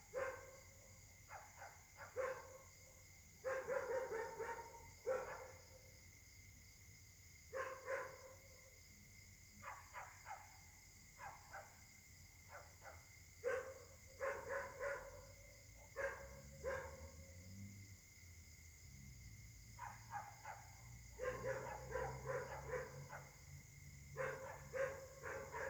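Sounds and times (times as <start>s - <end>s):
dogs barking: 0.1s - 0.6s, 1.3s - 2.7s, 3.5s - 5.6s, 7.6s - 8.4s, 9.6s - 10.6s, 11.2s - 11.8s, 12.5s - 17.2s, 19.8s - 23.4s, 24.2s - 25.6s.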